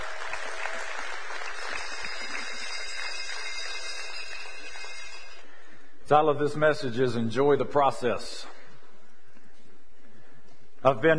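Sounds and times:
applause: 0:00.0 - 0:05.4
speech: 0:06.1 - 0:08.6, 0:10.8 - 0:11.1.

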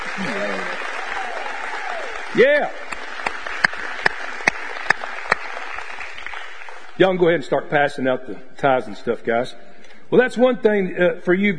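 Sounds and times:
audience applause: 0:00.0 - 0:07.0
speech: 0:00.2 - 0:00.7, 0:02.3 - 0:02.8, 0:07.0 - 0:11.5.

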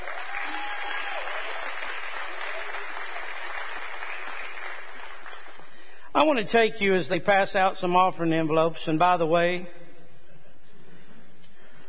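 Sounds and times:
audience clapping for tithes and offerings: 0:00.0 - 0:06.0
speech: 0:06.2 - 0:09.8.

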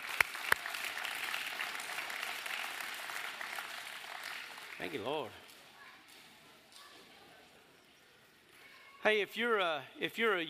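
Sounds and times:
sharp loud claps: 0:00.0 - 0:05.1
crowd applauding: 0:00.0 - 0:05.4
speech: 0:04.8 - 0:05.4, 0:09.0 - 0:10.4.

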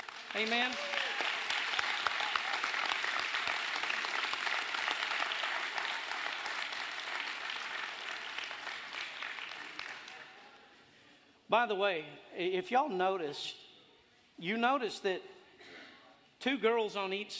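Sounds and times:
crowd applauding: 0:00.0 - 0:10.4
speech: 0:00.3 - 0:01.0, 0:11.5 - 0:13.6, 0:14.4 - 0:15.4, 0:16.4 - 0:17.3.

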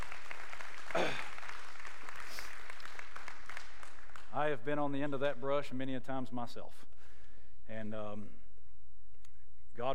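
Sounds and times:
audience clapping: 0:00.0 - 0:05.1
speech: 0:04.4 - 0:06.9, 0:07.7 - 0:08.4, 0:09.8 - 0:09.9.

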